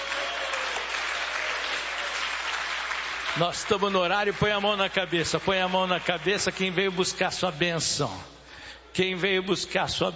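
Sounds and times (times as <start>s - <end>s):
audience clapping hands: 0.0s - 7.0s
speech: 3.4s - 8.3s, 9.0s - 10.1s.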